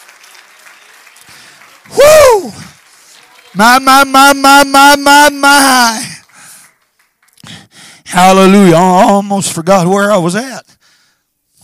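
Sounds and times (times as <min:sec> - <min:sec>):
audience clapping hands: 0:00.0 - 0:08.0
speech: 0:01.3 - 0:02.7, 0:03.6 - 0:06.1, 0:08.2 - 0:10.7.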